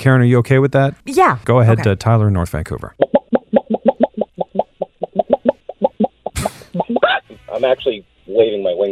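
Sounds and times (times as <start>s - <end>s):
speech: 0.0s - 3.1s, 7.6s - 8.8s
caller's voice imitating a chicken clucking: 3.0s - 7.4s.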